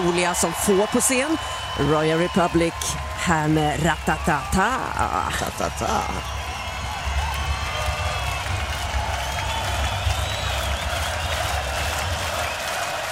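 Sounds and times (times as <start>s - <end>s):
speech: 0.0s - 6.4s
large concert crowd cheering and clapping: 0.0s - 13.0s
shrill cheers and whistles from concert crowd: 6.2s - 13.0s.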